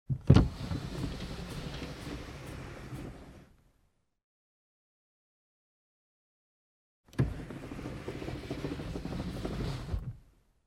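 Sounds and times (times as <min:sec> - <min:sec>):
car glass window lowered and raised manually: 0:00.1 - 0:03.5, 0:07.1 - 0:10.3.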